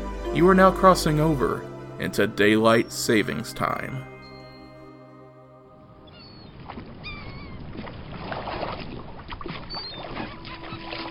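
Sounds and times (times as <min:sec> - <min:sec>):
speech: 0:00.4 - 0:04.1
seagulls calling near the sea: 0:03.2 - 0:08.2, 0:09.4 - 0:11.0.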